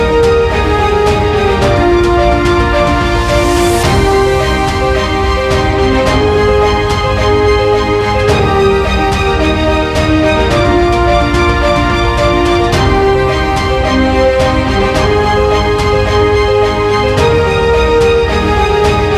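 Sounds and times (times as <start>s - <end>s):
inspiring epic orchestral trailer music: 0.0s - 19.1s.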